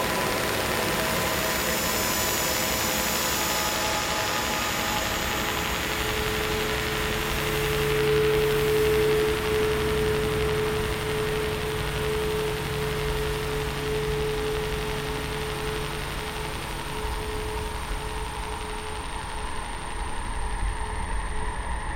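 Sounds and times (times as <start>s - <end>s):
sci-fi soundscape sound effects: 0.0s - 21.9s.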